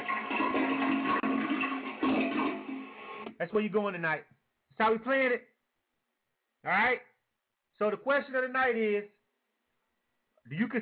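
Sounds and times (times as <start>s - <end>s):
toilet flushing: 0.0s - 3.3s
speech: 3.4s - 5.5s, 6.6s - 7.1s, 7.8s - 9.2s, 10.4s - 10.8s.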